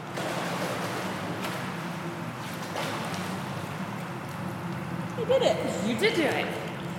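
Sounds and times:
person swimming in a pool during a lesson: 0.0s - 5.4s
speech: 5.3s - 6.6s.

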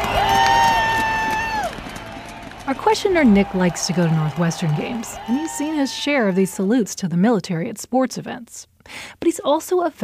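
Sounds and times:
person whooping: 0.0s - 2.1s, 3.0s - 6.6s
stadium crowd cheering at a university football game: 0.0s - 6.9s
speech: 2.9s - 10.0s.

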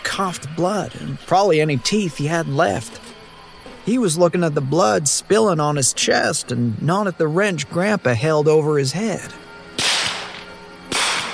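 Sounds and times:
speech: 0.2s - 3.0s, 3.9s - 9.9s
gunshots: 9.8s - 11.3s.

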